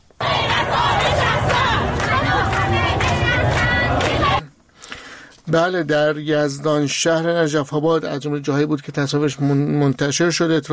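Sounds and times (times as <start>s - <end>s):
protest crowd chanting slogans: 0.2s - 4.4s
speech: 5.5s - 10.7s.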